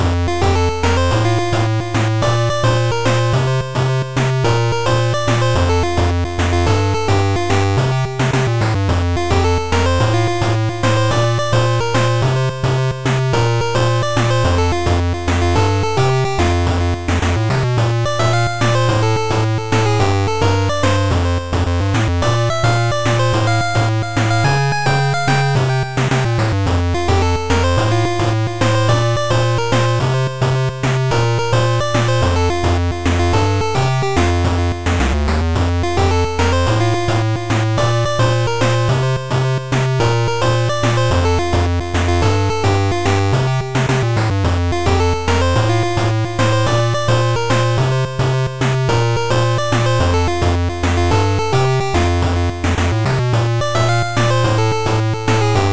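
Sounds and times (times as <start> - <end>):
8-bit music: 0.0 - 55.7.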